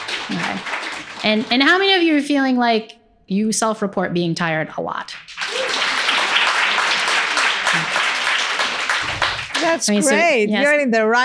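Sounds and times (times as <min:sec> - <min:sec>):
crowd clapping: 0:00.0 - 0:02.2, 0:05.0 - 0:10.3
speech: 0:00.3 - 0:05.3, 0:09.6 - 0:11.2.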